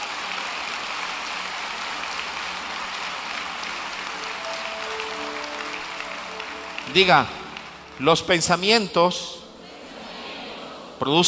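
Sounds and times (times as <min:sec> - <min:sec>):
large crowd applause: 0:00.0 - 0:10.7
faint sustained tones: 0:03.6 - 0:10.2
speech: 0:06.9 - 0:07.4, 0:08.0 - 0:09.4, 0:11.0 - 0:11.2.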